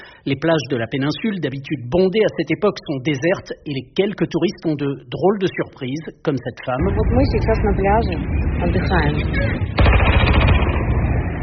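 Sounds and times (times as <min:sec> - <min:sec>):
speech: 0:00.2 - 0:10.5
heavy weapons firing at drones: 0:09.6 - 0:11.4.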